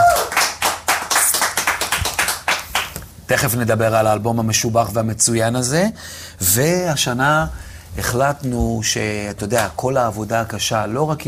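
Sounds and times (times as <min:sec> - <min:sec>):
audience clapping: 0:00.0 - 0:03.1
speech: 0:03.3 - 0:11.2.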